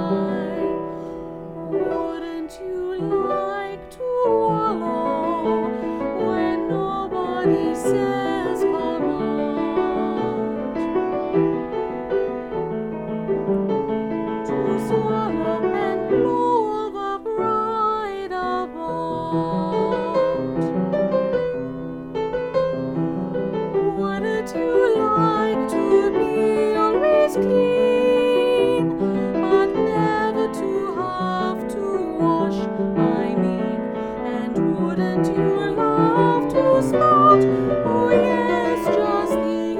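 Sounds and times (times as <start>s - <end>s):
alto line: 0.0s - 39.7s.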